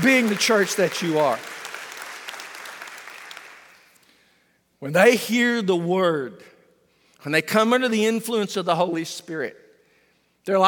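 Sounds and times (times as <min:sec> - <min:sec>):
speech: 0:00.0 - 0:01.6, 0:04.8 - 0:06.5, 0:07.2 - 0:09.6, 0:10.4 - 0:10.6
audience applause: 0:00.0 - 0:03.8.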